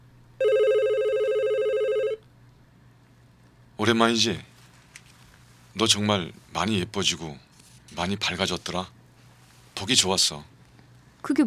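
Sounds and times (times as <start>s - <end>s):
telephone ringing: 0.4s - 2.2s
speech: 3.8s - 4.5s, 5.8s - 9.0s, 9.8s - 10.5s, 11.2s - 11.4s.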